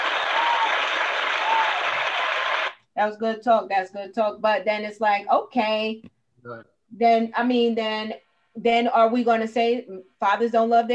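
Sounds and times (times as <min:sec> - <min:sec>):
audience applause: 0:00.0 - 0:02.8
speech: 0:03.0 - 0:10.9.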